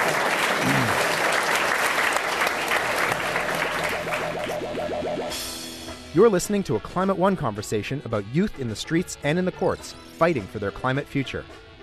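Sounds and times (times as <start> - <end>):
audience applause: 0.0 - 5.4
speech: 6.2 - 11.7.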